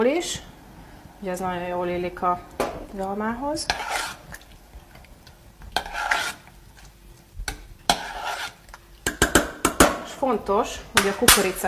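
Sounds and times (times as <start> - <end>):
speech: 0.0 - 0.5, 1.2 - 4.0, 10.2 - 11.6
spoon stirring sauce in a pot: 2.9 - 9.8.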